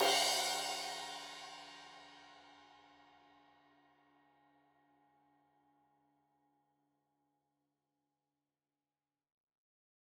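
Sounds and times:
15 inch crash cymbal edge hit: 0.0 - 2.2.

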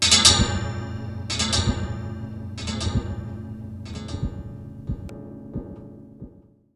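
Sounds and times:
wire and tin recorded with contact mic, delayed: 0.0 - 5.1.

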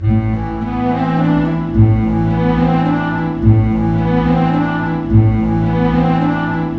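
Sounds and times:
orchestra playing: 0.0 - 6.7.

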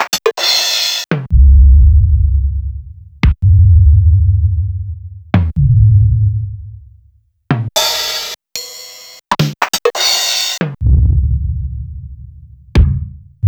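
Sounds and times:
RZ1 drum machine beat: 0.0 - 1.4, 2.0 - 4.1, 4.8 - 6.1, 7.5 - 11.6, 12.7 - 13.3.

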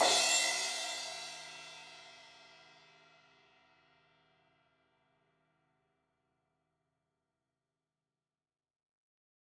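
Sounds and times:
16-inch crash cymbal hit on the edge: 0.0 - 1.6.

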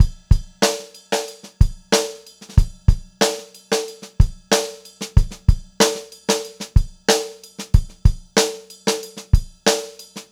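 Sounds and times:
funk groove drum loop: 0.0 - 10.2.

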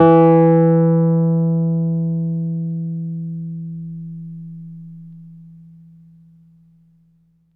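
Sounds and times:
electric piano note E2: 0.0 - 3.0.

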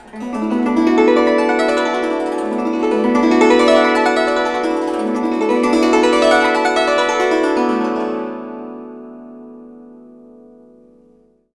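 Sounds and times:
guzheng: 0.0 - 11.0.

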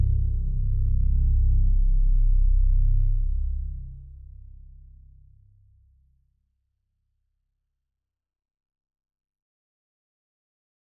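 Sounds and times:
subsonic flanged bass: 0.0 - 4.0.

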